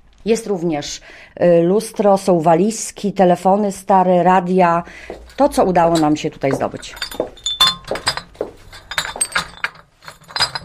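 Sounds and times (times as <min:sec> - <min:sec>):
speech: 0:00.2 - 0:07.3
old swing-top glass bottles clinking: 0:05.1 - 0:10.6.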